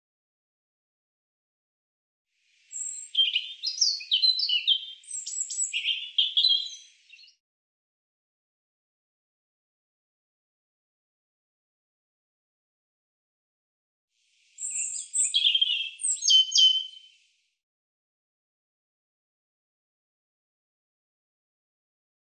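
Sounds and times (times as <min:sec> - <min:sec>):
European robin song: 0:02.5 - 0:07.4, 0:14.4 - 0:17.4.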